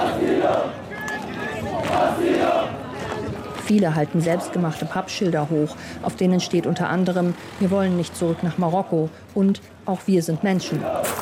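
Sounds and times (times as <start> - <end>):
protesters chanting in unison: 0.0 - 5.7, 10.1 - 11.1
speech: 3.7 - 11.1.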